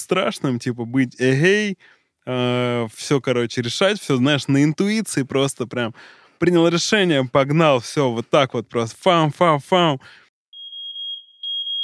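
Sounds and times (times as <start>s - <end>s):
speech: 0.1s - 10.2s
fire alarm beeping: 10.5s - 11.8s.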